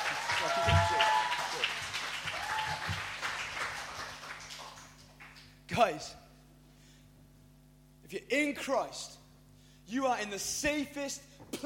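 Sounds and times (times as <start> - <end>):
whoops and cheers: 0.0 - 3.1
audience clapping: 0.0 - 5.6
speech: 0.4 - 0.7, 5.8 - 6.2, 8.1 - 9.2, 9.9 - 11.6.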